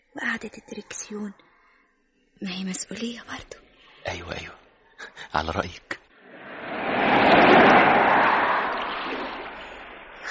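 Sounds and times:
speech: 0:00.3 - 0:01.5, 0:02.4 - 0:06.0
strong wind blowing: 0:06.2 - 0:10.2.

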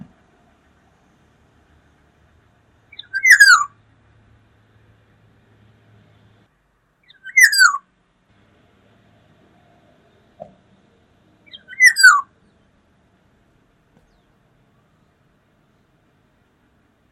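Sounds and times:
Black-naped oriole calls: 0:02.9 - 0:03.8, 0:07.0 - 0:07.8, 0:11.4 - 0:12.7.

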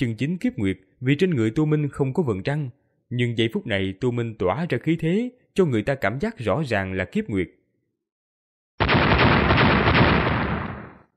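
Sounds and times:
speech: 0:00.0 - 0:07.6
explosion blasts: 0:08.8 - 0:11.1.

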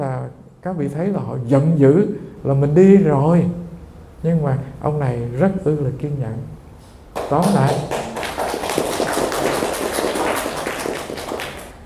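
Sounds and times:
speech: 0:00.6 - 0:03.6, 0:04.2 - 0:06.6, 0:07.2 - 0:08.0
audience applause at a Buddhist dharma talk: 0:07.1 - 0:11.8.

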